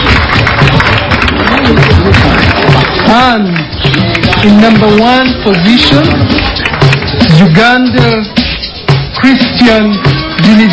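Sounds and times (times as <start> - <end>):
audience applause: 0.0 - 7.3
speech: 3.2 - 3.7, 4.4 - 6.4, 7.2 - 8.4, 9.2 - 10.7.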